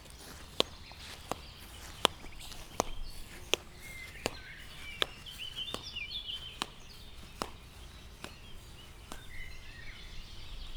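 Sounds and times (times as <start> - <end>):
slippers: 0.0 - 10.7.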